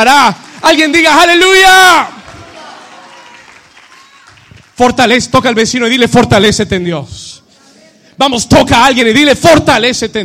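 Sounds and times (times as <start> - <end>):
speech: 0.0 - 2.2, 4.8 - 7.4, 8.2 - 10.2
audience applause: 0.0 - 4.8.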